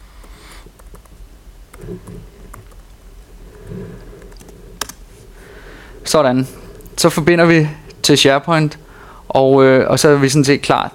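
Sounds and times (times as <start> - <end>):
low hum: 0.0 - 10.9
typing on computer keyboard: 0.2 - 1.1, 1.7 - 2.8
speech: 1.9 - 2.4, 6.1 - 10.9.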